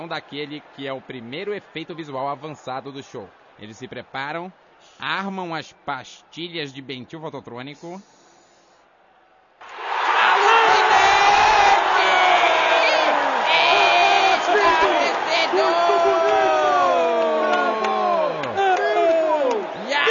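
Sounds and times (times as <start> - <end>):
speech: 0.0 - 8.2
audience shouting excitedly: 9.6 - 20.0.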